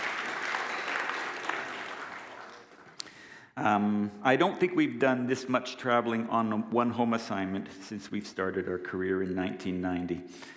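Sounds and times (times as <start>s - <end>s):
audience applause: 0.0s - 3.0s
speech: 3.6s - 10.5s.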